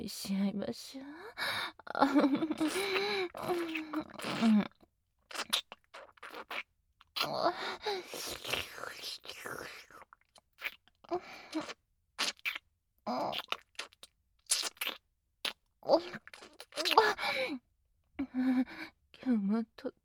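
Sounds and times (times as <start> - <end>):
speech: 0.0 - 4.8, 7.2 - 10.1, 11.1 - 11.8, 13.1 - 13.6, 15.8 - 16.3, 18.3 - 20.0
wet kissing of lips and tongue: 2.5 - 4.5, 5.3 - 10.8, 11.5 - 12.6, 13.2 - 17.0.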